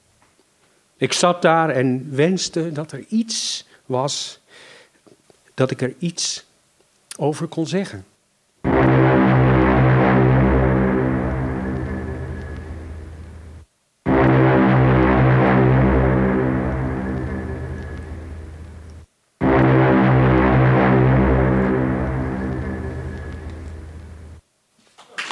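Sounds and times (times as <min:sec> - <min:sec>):
speech: 0:01.0 - 0:04.7, 0:05.6 - 0:06.5, 0:07.2 - 0:08.1
mournful foghorn blasts: 0:08.6 - 0:24.4
steady rushing noise: 0:08.6 - 0:24.4.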